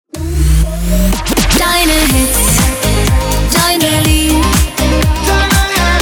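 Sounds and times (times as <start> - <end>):
full transition sound: 0.1 - 5.9.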